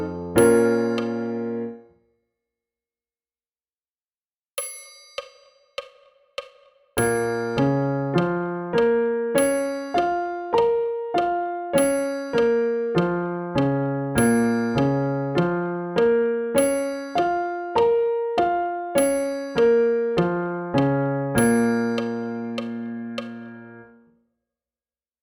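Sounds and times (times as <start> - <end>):
B-flat minor scale and arpeggio: 0.0 - 1.9, 7.0 - 24.0.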